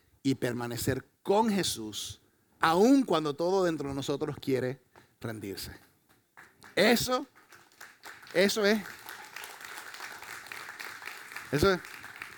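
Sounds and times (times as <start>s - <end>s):
speech: 0.2s - 5.9s, 6.7s - 7.4s, 8.3s - 9.0s, 11.5s - 12.0s
scattered hesitant audience applause: 6.4s - 12.3s.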